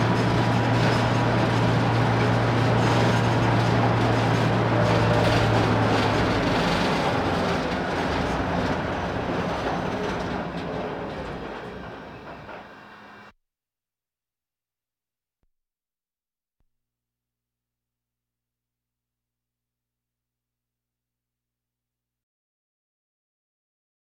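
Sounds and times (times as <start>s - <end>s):
military vehicles: 0.0s - 13.3s.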